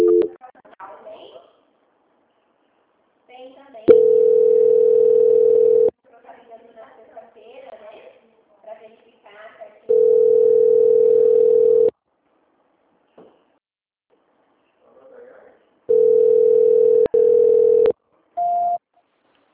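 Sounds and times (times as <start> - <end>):
telephone call transfer tone: 0.0 - 0.4, 3.9 - 5.9, 9.9 - 11.9, 15.9 - 18.8.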